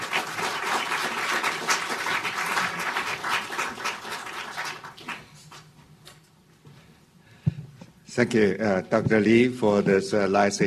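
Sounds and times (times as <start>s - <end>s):
crowd applauding: 0.0s - 5.7s
speech: 8.2s - 10.6s.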